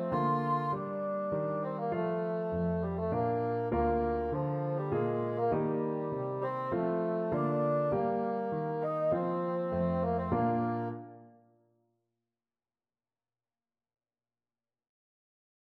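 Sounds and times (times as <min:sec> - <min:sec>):
bassoon playing a sarabande: 0:00.0 - 0:11.3.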